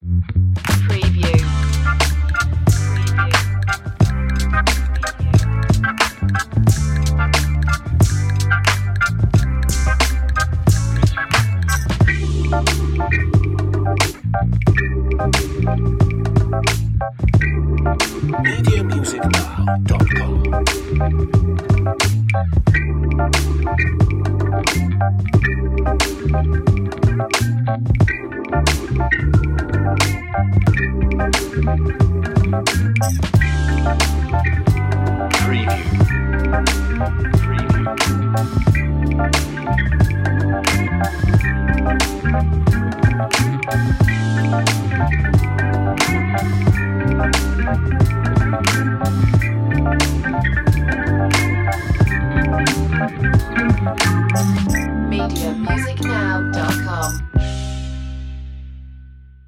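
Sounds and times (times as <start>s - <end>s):
funky chill hop music: 0.0s - 58.5s.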